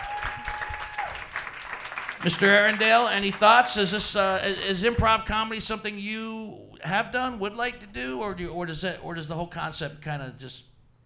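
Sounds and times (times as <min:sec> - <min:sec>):
audience applause: 0:00.0 - 0:04.0
speech: 0:02.2 - 0:10.7.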